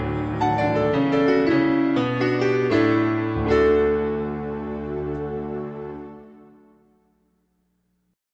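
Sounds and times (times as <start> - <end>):
melody: 0.1 - 6.7.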